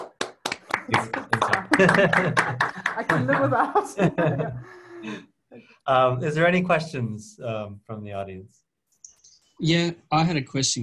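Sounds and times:
one person clapping alone for an audience after a talk: 0.0 - 3.6
laughter: 0.8 - 5.2
speech: 0.9 - 5.3, 5.9 - 8.6, 9.6 - 10.8.

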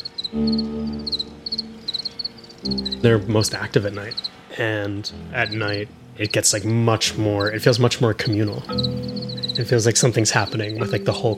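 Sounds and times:
male cricket post-mating chirp: 0.0 - 4.4, 7.4 - 11.0
speech: 0.3 - 0.8, 2.6 - 11.3.

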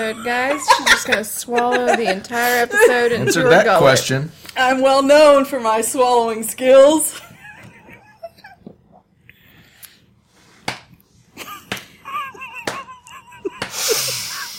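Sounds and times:
laughter: 0.0 - 4.0, 7.2 - 8.6, 11.4 - 14.5
speech: 0.0 - 7.3
sharp slapping smacks like spanking: 10.6 - 11.0, 11.6 - 12.0, 12.6 - 12.9, 13.6 - 13.8.

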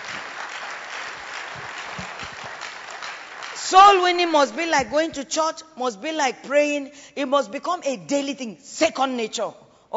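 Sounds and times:
audience clapping: 0.0 - 4.1
speech: 3.7 - 9.9.

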